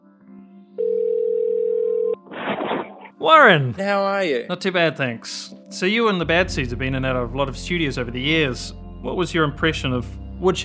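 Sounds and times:
telephone call ringing tone: 0:00.8 - 0:02.2
speech: 0:03.2 - 0:10.6.

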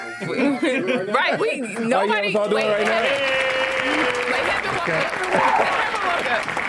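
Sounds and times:
laughing voices: 0:00.0 - 0:01.6, 0:03.1 - 0:06.4
people chattering: 0:00.0 - 0:06.6
studio round of applause clapped by hand: 0:02.5 - 0:06.6.

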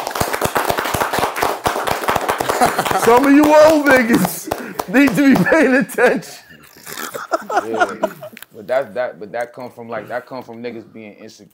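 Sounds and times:
hand clapping: 0:00.0 - 0:05.8
laughter: 0:02.4 - 0:08.4
speech: 0:02.6 - 0:06.4, 0:07.5 - 0:11.5.

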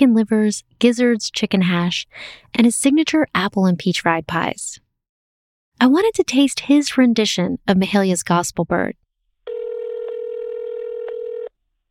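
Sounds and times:
speech: 0:00.1 - 0:04.8, 0:05.8 - 0:09.0
telephone tone of a disconnected number: 0:09.5 - 0:11.5.

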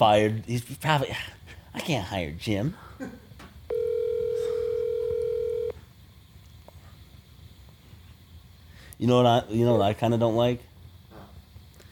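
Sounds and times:
speech: 0:00.0 - 0:03.2, 0:09.0 - 0:10.7
faint hiss: 0:00.0 - 0:11.9
phone line ringback tone: 0:03.7 - 0:05.8.

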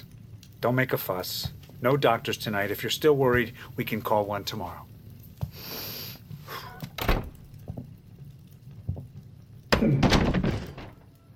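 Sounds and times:
speech: 0:00.6 - 0:04.9
door being opened: 0:06.7 - 0:07.5, 0:09.7 - 0:11.2.

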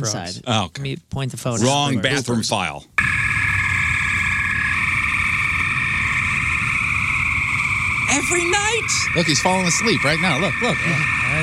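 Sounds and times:
speech: 0:00.0 - 0:03.2, 0:08.1 - 0:11.4
spring peeper frogs calling at night: 0:03.0 - 0:11.4.

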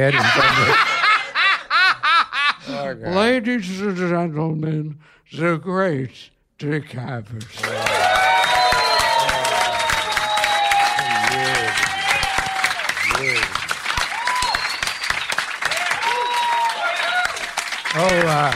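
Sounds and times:
speech: 0:00.0 - 0:00.9, 0:02.9 - 0:07.9, 0:18.0 - 0:18.5
laughter: 0:00.0 - 0:02.8
crowd cheering and whooping: 0:07.6 - 0:17.7
audience applause: 0:07.6 - 0:18.5.

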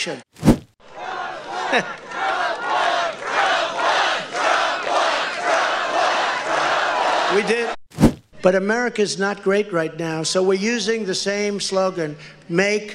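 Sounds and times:
speech: 0:00.0 - 0:00.5, 0:01.7 - 0:02.0, 0:07.3 - 0:07.8, 0:08.4 - 0:12.9
crowd cheering at a rally: 0:00.8 - 0:07.8.

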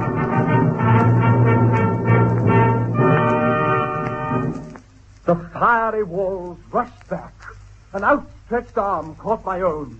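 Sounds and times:
loud blast of many trumpets: 0:00.0 - 0:04.6
speech: 0:05.3 - 0:09.9.

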